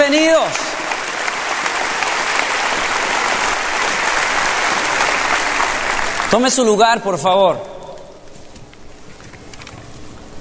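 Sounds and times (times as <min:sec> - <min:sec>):
audience applause: 0:00.0 - 0:06.8
speech: 0:06.3 - 0:07.7.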